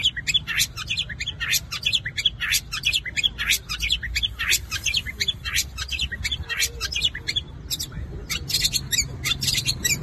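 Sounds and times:
long-tailed shrike chattering: 0:00.0 - 0:10.0.

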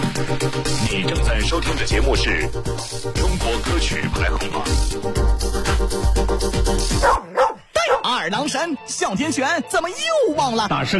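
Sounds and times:
speech: 0:00.2 - 0:07.4, 0:08.2 - 0:10.9
dog barking: 0:07.0 - 0:08.2.

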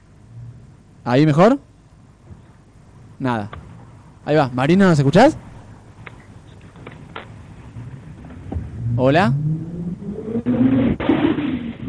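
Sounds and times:
speech: 0:01.0 - 0:01.7, 0:03.2 - 0:03.6, 0:04.2 - 0:05.4, 0:09.0 - 0:09.6
car engine droning over a muffled narrowband phone line: 0:03.5 - 0:11.8.

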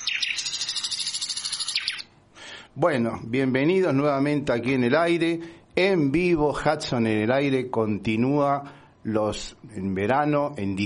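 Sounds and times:
nightingale singing: 0:00.0 - 0:02.1
speech: 0:02.8 - 0:10.8.

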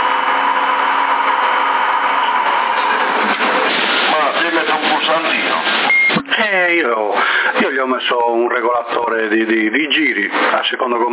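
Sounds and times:
electric cooling fan on a CB radio setup whirring at low speed: 0:00.0 - 0:06.6
speech: 0:07.9 - 0:11.1.

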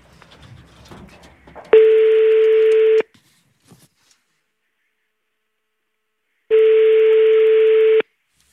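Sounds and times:
outgoing phone call ringback tone: 0:01.8 - 0:03.1, 0:06.5 - 0:08.1.

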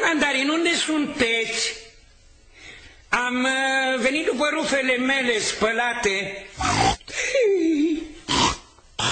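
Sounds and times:
speech: 0:00.1 - 0:01.8, 0:03.2 - 0:06.9
pig grunting in a laundry: 0:06.6 - 0:07.0, 0:08.3 - 0:09.0.

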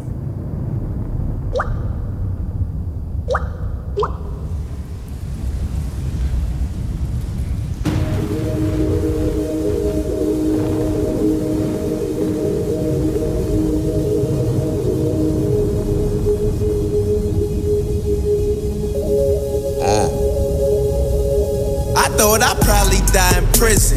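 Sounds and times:
thunder sample rumbling at the opening of a hip-hop song: 0:00.0 - 0:23.9
dripping plops: 0:01.5 - 0:02.0, 0:03.3 - 0:04.5
sustained synth chord: 0:07.9 - 0:23.4.

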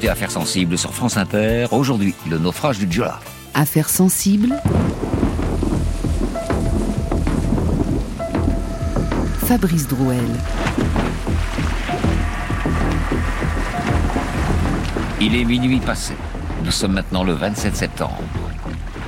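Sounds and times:
speech: 0:00.0 - 0:05.1, 0:09.5 - 0:11.0, 0:15.2 - 0:18.4
tonal creak: 0:04.5 - 0:16.7
deep rolling thunder in a storm at night: 0:04.5 - 0:19.0
heavy rain in a storm at night: 0:04.5 - 0:19.0.

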